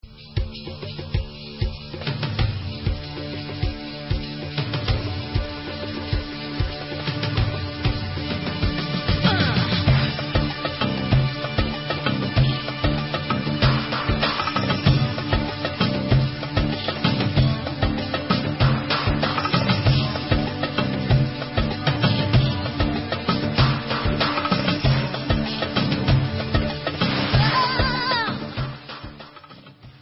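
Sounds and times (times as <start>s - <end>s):
dabke instrumental music: 0.0s - 29.9s.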